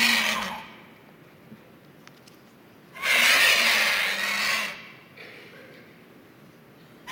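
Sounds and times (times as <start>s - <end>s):
vulture call: 0.0s - 0.8s, 3.0s - 4.8s.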